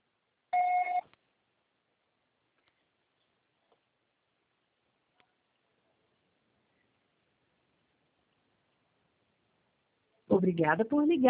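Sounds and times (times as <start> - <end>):
voicemail beep on a TIM mobile line: 0.6 - 1.0
speech: 10.4 - 11.2.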